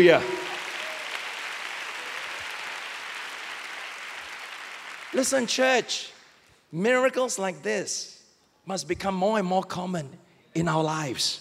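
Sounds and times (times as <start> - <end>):
speech: 0.0 - 0.4, 5.1 - 11.3
church audience applause: 0.0 - 5.5.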